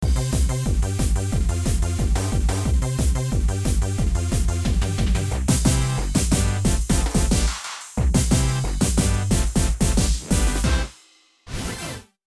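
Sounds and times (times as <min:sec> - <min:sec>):
remix music with tempo up: 0:00.0 - 0:11.0.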